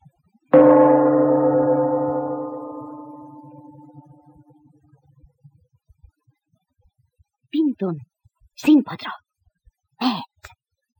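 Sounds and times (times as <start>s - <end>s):
gong struck: 0.6s - 4.4s
speech: 7.8s - 9.2s.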